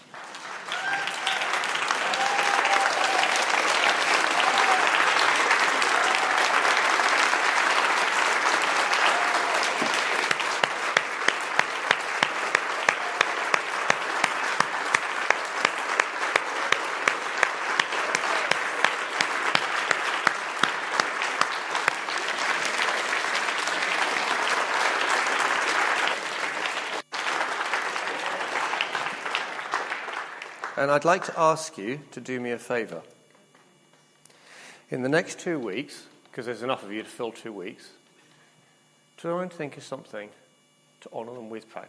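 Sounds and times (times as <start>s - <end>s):
audience applauding: 0.0s - 31.9s
speech: 30.8s - 33.1s, 34.9s - 38.0s, 39.2s - 40.4s, 41.0s - 41.8s.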